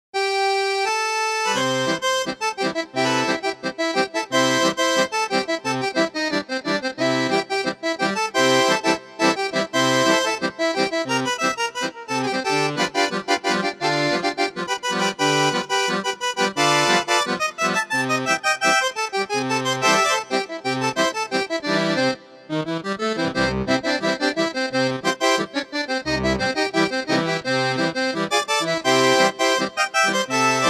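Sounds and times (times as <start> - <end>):
accordion: 0.2 - 30.6.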